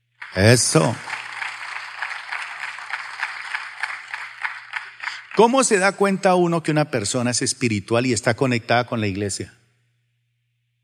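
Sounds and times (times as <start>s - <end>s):
audience applause: 0.1s - 6.4s
speech: 0.4s - 1.1s, 5.4s - 9.6s.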